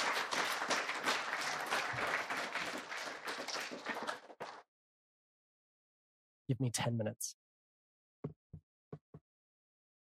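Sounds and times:
round of applause: 0.0 - 4.6
speech: 6.5 - 7.4.

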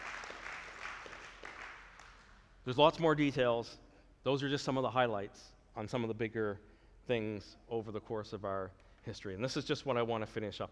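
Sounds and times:
audience applause: 0.0 - 2.2
speech: 2.6 - 10.6.

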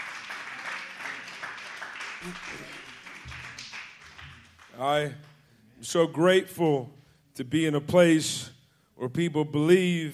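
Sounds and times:
audience clapping: 0.0 - 5.4
speech: 2.2 - 2.8, 4.8 - 10.1.

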